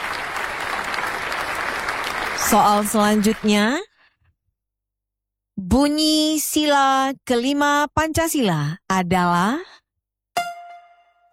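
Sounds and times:
audience clapping for a team at a school quiz contest: 0:00.0 - 0:03.8
speech: 0:02.5 - 0:03.9, 0:05.7 - 0:09.7.

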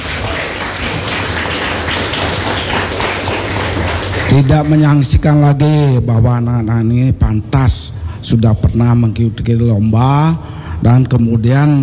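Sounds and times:
audience applause: 0:00.0 - 0:05.0
speech: 0:04.4 - 0:11.8.

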